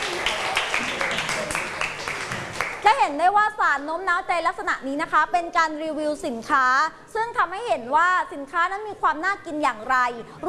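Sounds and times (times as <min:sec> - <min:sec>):
audience applause: 0:00.0 - 0:02.8
speech: 0:02.8 - 0:10.4.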